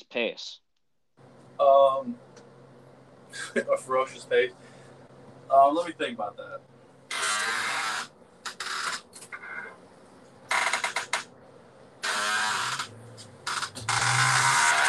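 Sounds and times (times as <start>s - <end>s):
speech: 0.0s - 0.6s, 1.6s - 2.4s, 3.3s - 4.7s, 5.5s - 6.7s
creaking like a rocking chair: 7.1s - 9.8s, 10.5s - 11.3s, 12.0s - 14.8s.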